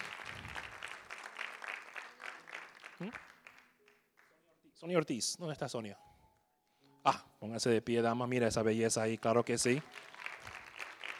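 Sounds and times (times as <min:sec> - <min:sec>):
audience applause: 0:00.0 - 0:03.7, 0:09.4 - 0:11.1
speech: 0:03.0 - 0:03.3, 0:04.8 - 0:06.1, 0:07.0 - 0:10.2.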